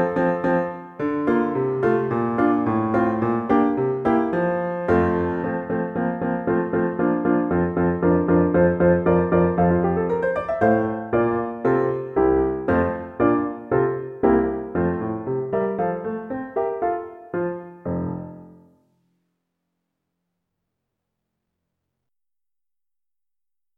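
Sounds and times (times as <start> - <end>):
piano playing: 0.0 - 18.8.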